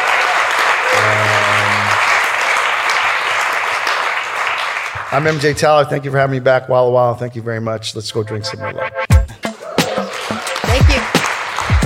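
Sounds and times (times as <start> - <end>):
audience applause: 0.0 - 5.7, 9.6 - 11.8
speech: 5.1 - 9.1.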